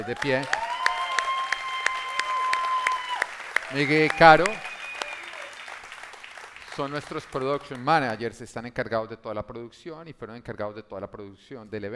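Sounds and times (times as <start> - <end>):
speech: 0.0 - 0.6, 3.7 - 4.7, 6.8 - 11.9
audience applause: 0.0 - 8.2.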